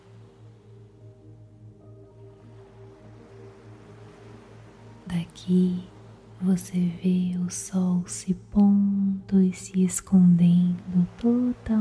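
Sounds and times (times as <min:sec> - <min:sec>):
ocean waves on a paradise beach at sunset: 0:00.0 - 0:11.7
speech: 0:05.2 - 0:11.7.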